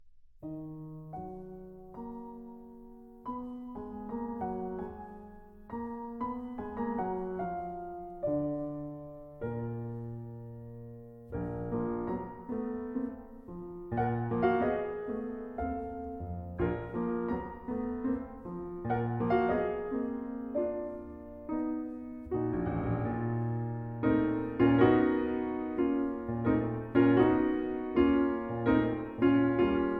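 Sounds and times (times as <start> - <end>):
piano mazurka: 0.4 - 29.9.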